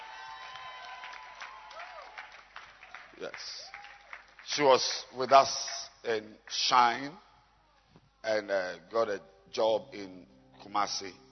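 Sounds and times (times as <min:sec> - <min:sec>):
audience clapping hands: 0:00.0 - 0:06.8
speech: 0:03.2 - 0:03.8, 0:04.5 - 0:07.3, 0:08.2 - 0:11.2.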